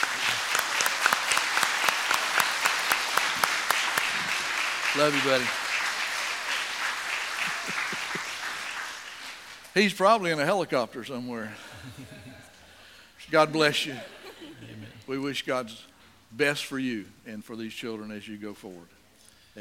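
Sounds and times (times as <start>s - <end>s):
audience applause: 0.0s - 9.7s
speech: 5.0s - 5.6s, 9.8s - 12.1s, 13.3s - 14.2s, 15.1s - 19.0s
laughter: 7.0s - 8.8s, 11.6s - 12.6s, 13.8s - 15.1s.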